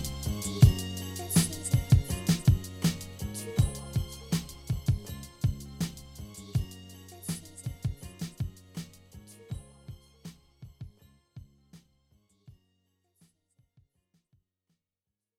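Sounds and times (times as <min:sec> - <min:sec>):
lofi music: 0:00.0 - 0:11.0.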